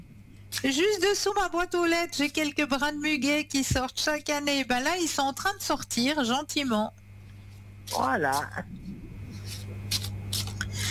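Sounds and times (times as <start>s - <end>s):
steady low hum: 0.0s - 10.8s
speech: 0.6s - 7.0s, 7.9s - 8.8s
deck of cards being shuffled: 9.4s - 10.6s.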